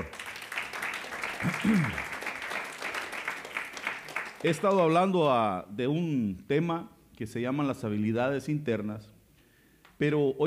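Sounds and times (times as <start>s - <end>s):
audience applause: 0.0s - 5.0s
speech: 1.4s - 2.1s, 4.4s - 9.1s, 10.0s - 10.4s.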